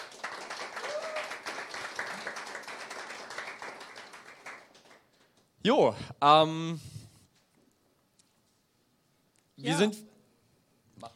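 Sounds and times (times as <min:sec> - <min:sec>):
audience applause at an event: 0:00.0 - 0:05.5
speech: 0:05.6 - 0:06.9, 0:09.8 - 0:10.1.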